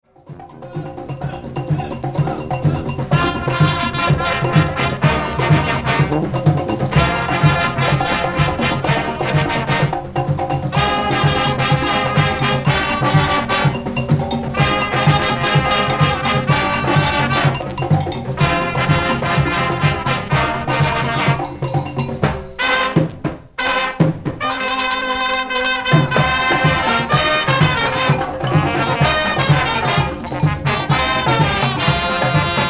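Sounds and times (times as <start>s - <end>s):
fanfare: 0.4s - 32.6s.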